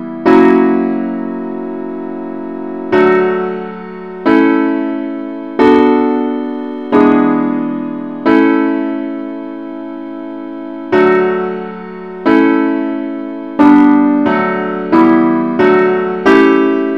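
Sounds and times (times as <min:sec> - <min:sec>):
simple accompaniment in D: 0:00.0 - 0:16.9.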